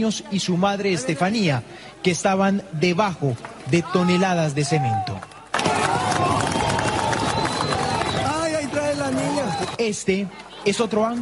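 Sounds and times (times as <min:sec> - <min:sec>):
speech: 0:00.0 - 0:05.3, 0:09.8 - 0:11.1
community shouting desperately at rescue site: 0:03.8 - 0:09.8.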